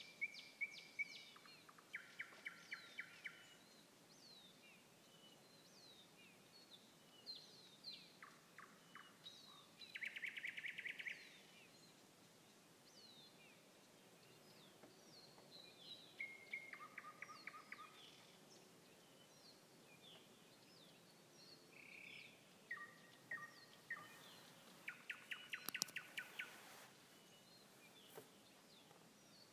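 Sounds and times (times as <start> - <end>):
nightingale song with rattling trill: 0.0 - 29.5.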